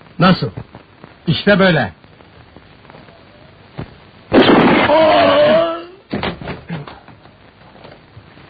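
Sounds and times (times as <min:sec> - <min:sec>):
speech: 0:00.2 - 0:02.0, 0:04.9 - 0:05.5
gunshot: 0:04.3 - 0:05.3.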